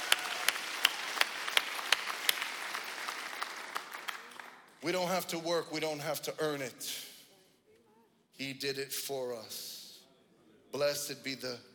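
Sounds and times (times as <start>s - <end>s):
audience clapping in a steady rhythmic beat: 0.0s - 4.8s
speech: 4.8s - 7.1s, 8.4s - 9.8s, 10.7s - 11.7s.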